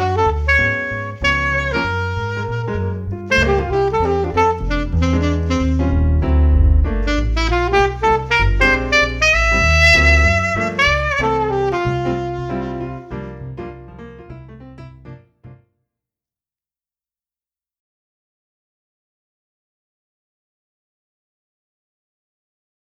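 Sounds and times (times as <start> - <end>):
jazz keyboard: 0.0 - 15.6.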